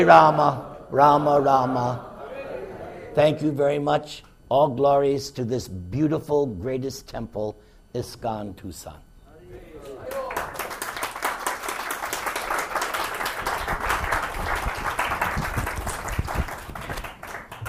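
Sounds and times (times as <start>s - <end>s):
speech: 0.0s - 2.1s, 3.2s - 9.0s
audience clapping: 9.8s - 17.6s.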